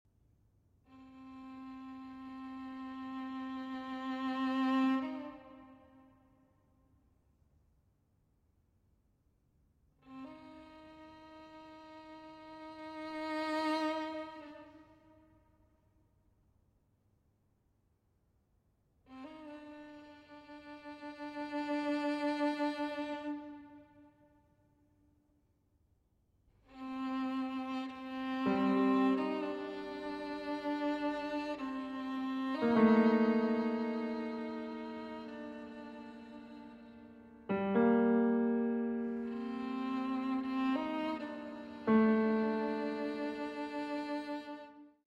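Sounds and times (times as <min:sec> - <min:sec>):
violin and piano suite: 0:01.0 - 0:06.0, 0:10.0 - 0:14.9, 0:19.1 - 0:24.0, 0:26.7 - 0:45.0.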